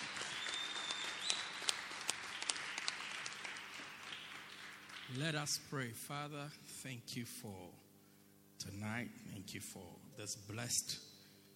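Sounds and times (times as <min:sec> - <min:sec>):
audience clapping: 0:00.0 - 0:05.6
speech: 0:05.1 - 0:07.8, 0:08.6 - 0:11.1.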